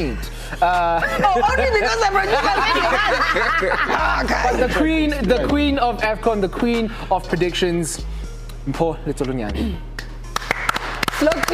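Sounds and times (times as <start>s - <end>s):
speech: 0.0s - 9.9s, 11.2s - 11.5s
laughter: 0.6s - 5.5s
slow hand claps: 9.9s - 11.5s.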